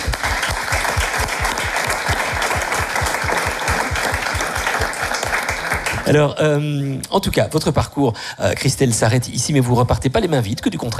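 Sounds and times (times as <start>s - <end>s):
studio audience applause: 0.0s - 6.2s
speech: 6.1s - 10.9s.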